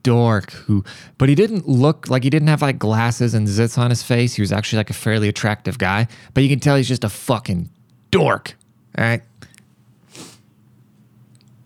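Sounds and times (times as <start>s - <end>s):
speech: 0.0s - 9.3s
sniffling: 9.4s - 10.5s.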